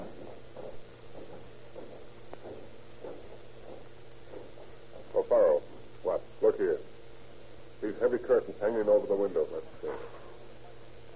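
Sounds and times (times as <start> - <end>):
footsteps climbing a staircase: 0.0 - 6.4
low hum: 0.0 - 11.1.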